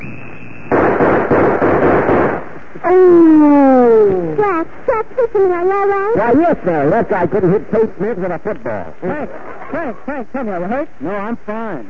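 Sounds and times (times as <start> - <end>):
gunshots: 0.6 - 2.6
speech: 2.8 - 3.3, 4.6 - 11.8.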